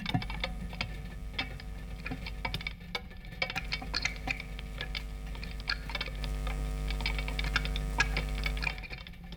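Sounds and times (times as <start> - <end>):
live vocoder mix: 0.2 - 2.5, 3.6 - 8.8.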